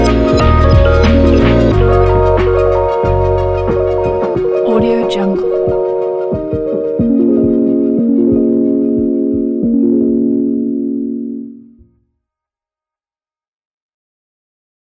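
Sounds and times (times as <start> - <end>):
chill urban hip hop beat: 0.0 - 10.8.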